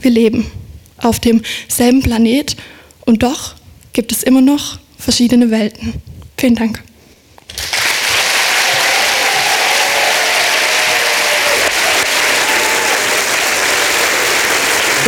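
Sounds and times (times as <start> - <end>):
speech: 0.0 - 6.9
audience applause: 7.5 - 15.0.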